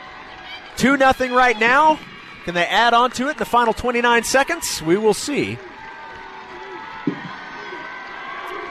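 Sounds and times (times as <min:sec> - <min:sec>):
large stadium crowd cheering and applauding: 0:00.0 - 0:08.6
speech: 0:00.8 - 0:05.7.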